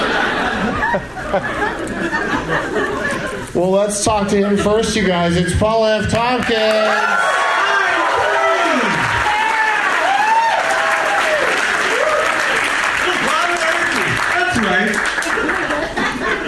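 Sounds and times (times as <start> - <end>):
laughter: 0.0 - 5.5, 13.1 - 16.4
speech: 0.9 - 1.6, 3.6 - 7.4
live audience whooping and cheering: 4.4 - 15.9
live audience applause: 6.2 - 16.4.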